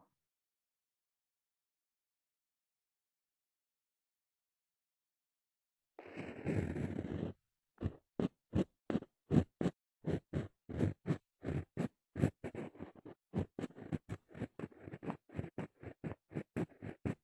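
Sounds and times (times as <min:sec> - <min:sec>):
maid scraping with an ear pick: 0:06.0 - 0:17.2.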